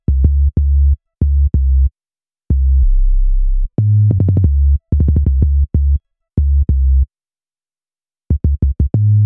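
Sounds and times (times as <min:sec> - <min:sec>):
hip-hop bass: 0:00.1 - 0:01.9, 0:02.5 - 0:07.0, 0:08.3 - 0:09.2.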